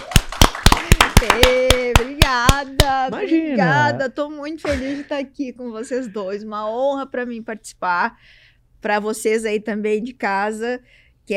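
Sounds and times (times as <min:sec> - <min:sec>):
audience applause: 0:00.0 - 0:02.2
speech: 0:01.2 - 0:11.3.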